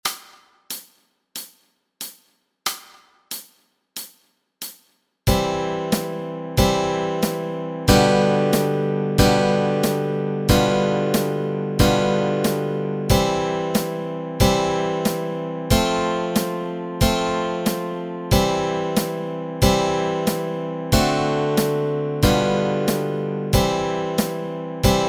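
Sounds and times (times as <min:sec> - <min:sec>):
guitar chords: 0:05.3 - 0:25.0.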